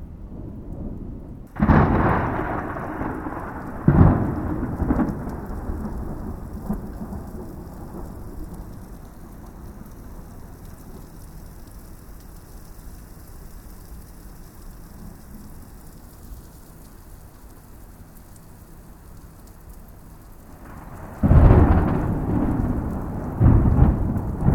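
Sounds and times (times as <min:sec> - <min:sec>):
thunderstorm rain: 0:00.0 - 0:24.5
big thunder in a thunderstorm: 0:00.3 - 0:10.3, 0:20.6 - 0:24.5.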